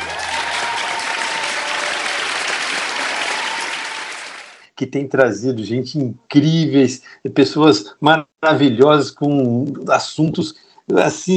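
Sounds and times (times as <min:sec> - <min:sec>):
applause: 0:00.0 - 0:04.6
speech: 0:04.8 - 0:11.3.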